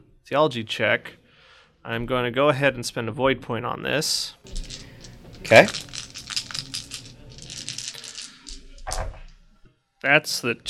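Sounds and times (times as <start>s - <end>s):
speech: 0.3s - 1.2s, 1.8s - 4.6s, 5.4s - 5.9s, 10.0s - 10.6s
dice rattling and clattering across a surface: 4.5s - 9.4s.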